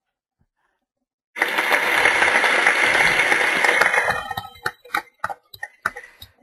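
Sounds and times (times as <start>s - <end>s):
applause sound effect: 1.4s - 6.2s.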